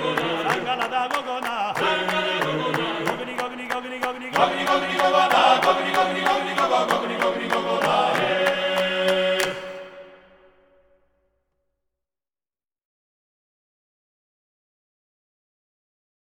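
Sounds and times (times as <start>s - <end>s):
folk choir singing: 0.0s - 10.8s.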